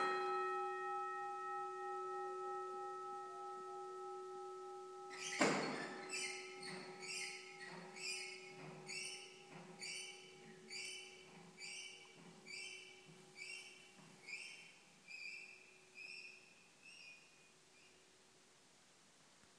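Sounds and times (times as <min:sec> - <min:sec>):
bell ringing: 0:00.0 - 0:11.3
squeaky fold-down handle: 0:05.1 - 0:14.7.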